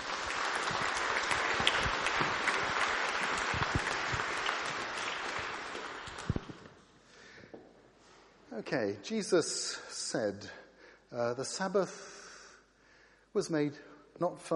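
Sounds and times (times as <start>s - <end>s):
round of applause: 0.0s - 6.8s
speech: 8.7s - 12.1s, 13.3s - 14.5s.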